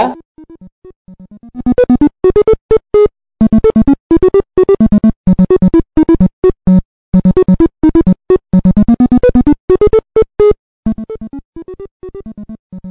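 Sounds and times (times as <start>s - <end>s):
classic video game music track: 0.0s - 12.8s.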